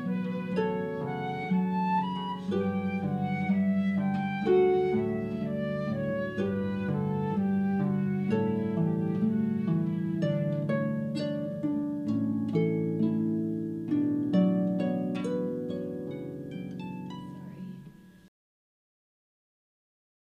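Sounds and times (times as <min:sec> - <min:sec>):
flute: 0:00.0 - 0:12.2
harp: 0:00.0 - 0:18.3.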